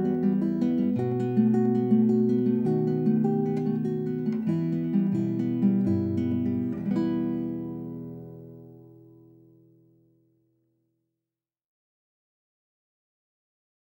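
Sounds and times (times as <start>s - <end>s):
classical guitar: 0.0s - 10.6s.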